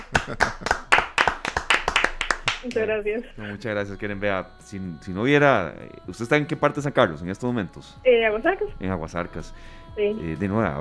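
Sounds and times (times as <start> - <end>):
laughter: 0.0 - 1.1
applause: 0.0 - 2.8
speech: 0.3 - 0.8, 2.6 - 10.8.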